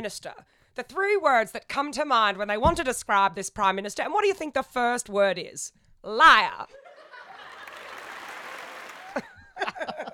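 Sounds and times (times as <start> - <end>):
speech: 0.0 - 6.8
laughter: 6.7 - 10.1
crowd applause sound effect: 7.1 - 9.4.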